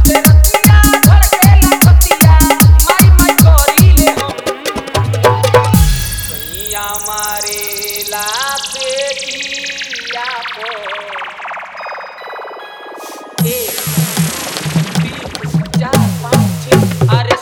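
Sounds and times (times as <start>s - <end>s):
old Bhojpuri dholak with hard bass mix: 0.0s - 8.0s, 13.4s - 17.3s.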